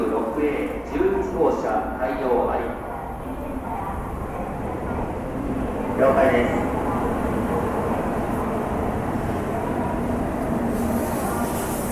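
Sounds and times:
people talking: 0.0s - 8.6s
trains rumbling at a train station in Japan: 0.0s - 11.9s
hiss: 10.7s - 11.9s.

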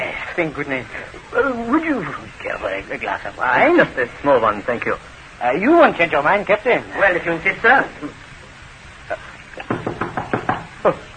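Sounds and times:
speech: 0.4s - 8.2s, 10.8s - 11.1s
knocking on a door: 9.6s - 10.7s.

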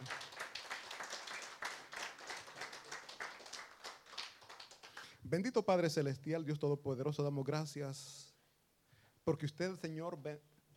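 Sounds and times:
audience applause: 0.0s - 5.1s
speech: 5.2s - 8.2s, 9.3s - 10.5s.

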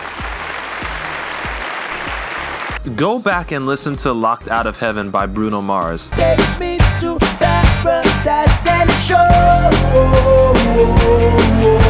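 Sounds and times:
crowd applause: 0.0s - 2.8s
speech: 2.8s - 11.8s.

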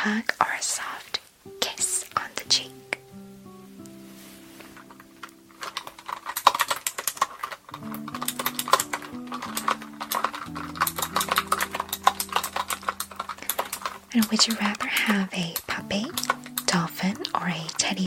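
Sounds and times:
speech: 0.0s - 1.1s, 14.2s - 18.0s
computer keyboard typing: 5.0s - 18.0s.

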